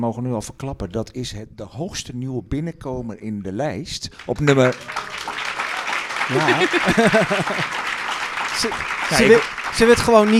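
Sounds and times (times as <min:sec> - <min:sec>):
speech: 0:00.0 - 0:05.2, 0:06.3 - 0:07.8, 0:08.6 - 0:10.3
audience applauding: 0:04.2 - 0:10.3
laughter: 0:04.6 - 0:09.5.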